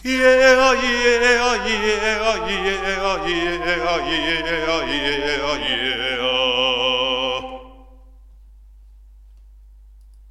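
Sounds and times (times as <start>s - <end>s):
person singing vocalise: 0.0s - 8.0s.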